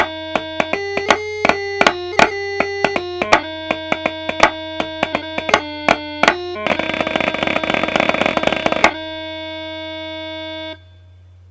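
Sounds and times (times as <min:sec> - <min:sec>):
snare drum: 0:00.0 - 0:09.0.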